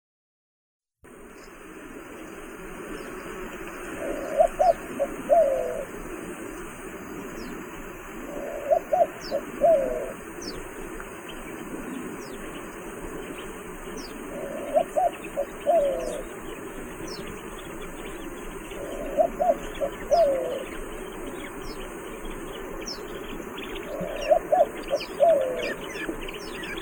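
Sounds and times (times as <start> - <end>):
white-winged dove giving low coos, Zenaida asiatica: 3.8 - 7.2, 8.0 - 10.8, 14.0 - 17.4, 18.6 - 22.9, 23.6 - 26.8.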